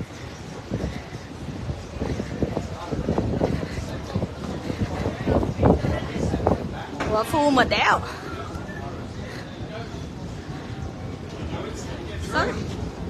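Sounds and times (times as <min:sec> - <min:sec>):
strong wind buffeting the microphone: 0:00.0 - 0:13.0
speech: 0:07.2 - 0:08.2.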